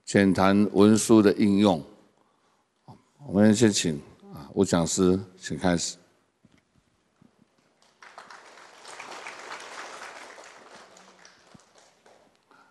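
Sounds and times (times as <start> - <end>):
speech: 0.1 - 1.9, 3.2 - 6.0
audience applause: 7.7 - 12.6.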